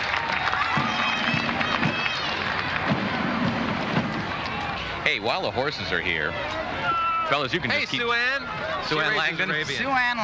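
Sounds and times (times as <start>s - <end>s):
audience applause: 0.0s - 4.8s
speech: 5.1s - 6.6s, 7.3s - 10.2s.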